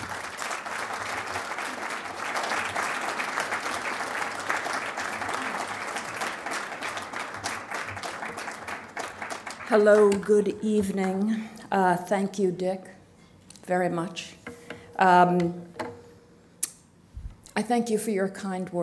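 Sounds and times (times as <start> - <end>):
audience applause at a Manhattan Institute evening event: 0.0 - 10.2
speech: 9.7 - 12.9, 13.7 - 14.2, 15.0 - 15.7, 17.6 - 18.8.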